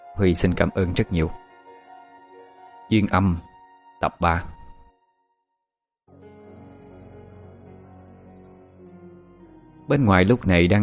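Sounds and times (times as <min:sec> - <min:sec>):
speech: 0:00.2 - 0:01.4, 0:02.9 - 0:04.6, 0:09.9 - 0:10.8
insects chirping at night: 0:06.2 - 0:10.8.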